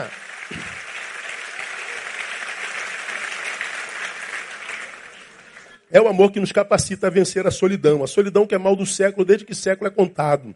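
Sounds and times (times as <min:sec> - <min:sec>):
speech: 0:00.0 - 0:00.2, 0:06.0 - 0:10.5
audience applause: 0:00.0 - 0:05.8.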